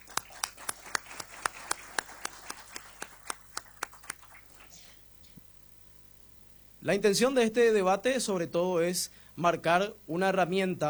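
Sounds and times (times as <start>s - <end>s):
audience applause: 0.0s - 4.7s
speech: 6.8s - 10.8s.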